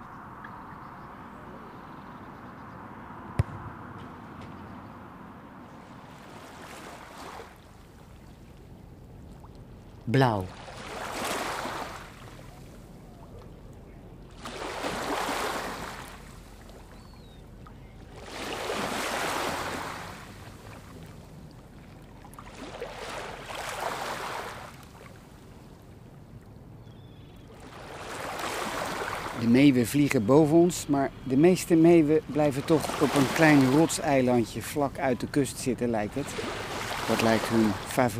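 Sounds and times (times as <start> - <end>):
speech: 10.1 - 10.6, 29.7 - 38.1
waves washing up on a city beach: 10.2 - 12.9, 14.3 - 16.9, 18.1 - 25.1, 27.6 - 29.5, 32.2 - 38.1.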